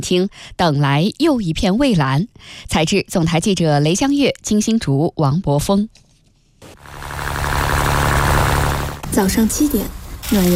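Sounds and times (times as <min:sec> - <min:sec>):
speech: 0:00.0 - 0:06.0, 0:09.1 - 0:10.5
boat motor starting in Sanya Yazhou central fishing harbor: 0:06.7 - 0:09.8.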